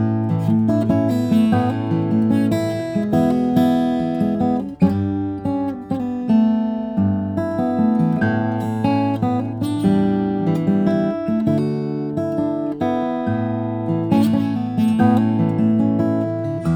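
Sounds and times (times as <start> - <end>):
Brazilian rosewood and spruce guitar: 0.0 - 16.7.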